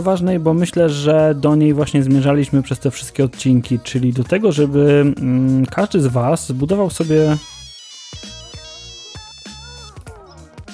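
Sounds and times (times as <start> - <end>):
speech: 0.0 - 8.3
phone ringtone signalling an incoming call: 7.0 - 10.7.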